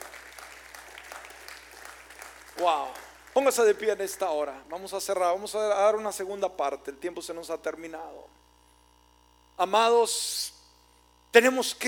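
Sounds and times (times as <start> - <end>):
audience applause: 0.0 - 4.7
speech: 2.6 - 8.4, 9.6 - 10.6, 11.3 - 11.8.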